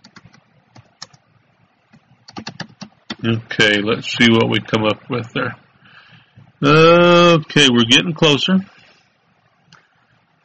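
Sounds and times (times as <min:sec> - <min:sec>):
typing on a computer keyboard: 0:00.0 - 0:01.2, 0:01.9 - 0:03.2
speech: 0:03.2 - 0:05.6, 0:06.6 - 0:08.7.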